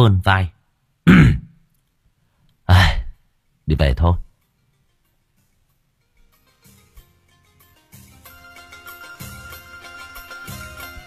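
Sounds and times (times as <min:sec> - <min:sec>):
speech: 0:00.0 - 0:01.4, 0:02.7 - 0:03.0, 0:03.7 - 0:04.2
loud throat clearing: 0:01.1 - 0:01.6.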